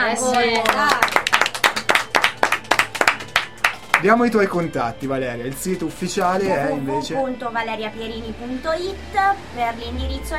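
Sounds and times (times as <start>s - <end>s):
studio applause: 0.0s - 4.5s
speech: 0.1s - 1.2s, 4.0s - 10.3s.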